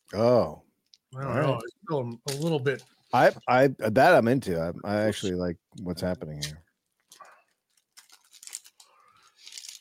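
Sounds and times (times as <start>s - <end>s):
speech: 0.1s - 6.6s
wrapper crinkling as it is peeled off Finnish salty licorice: 7.0s - 9.7s.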